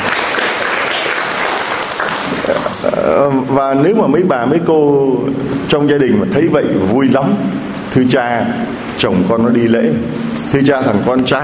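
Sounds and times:
church congregation applauding: 0:00.0 - 0:03.0
speech: 0:03.0 - 0:11.4.

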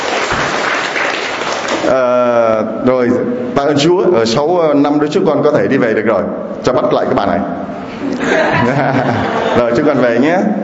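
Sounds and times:
congregation applause at a church gathering: 0:00.0 - 0:01.9
speech: 0:01.9 - 0:02.1, 0:02.8 - 0:10.6
laughter: 0:08.0 - 0:10.0.

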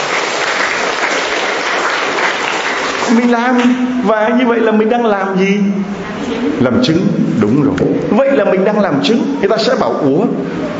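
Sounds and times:
audience applause: 0:00.0 - 0:03.3
speech: 0:03.1 - 0:10.7.

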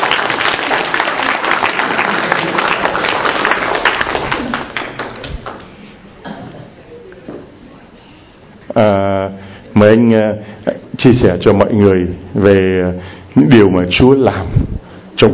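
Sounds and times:
audience applause welcoming a speaker: 0:00.0 - 0:05.8
speech: 0:09.8 - 0:14.6, 0:15.2 - 0:15.3.

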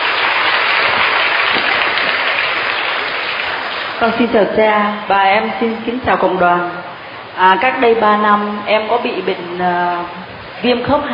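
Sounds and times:
audience applause: 0:00.0 - 0:03.9
speech: 0:04.0 - 0:06.8, 0:07.4 - 0:11.1.

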